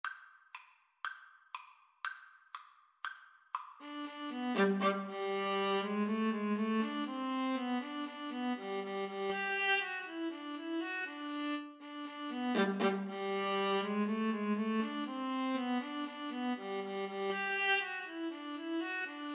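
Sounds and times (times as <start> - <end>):
viola: 3.8 - 19.3
cello: 3.9 - 19.3.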